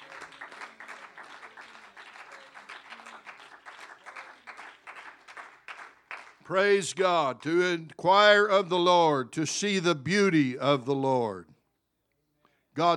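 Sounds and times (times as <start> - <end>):
audience clapping hands: 0.0 - 7.7
speech: 6.5 - 11.5, 12.8 - 12.9.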